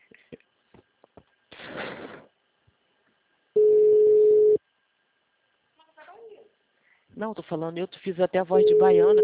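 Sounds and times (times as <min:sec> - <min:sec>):
telephone tone after call hung up: 0:03.6 - 0:04.6, 0:08.6 - 0:09.2
speech: 0:07.2 - 0:09.2.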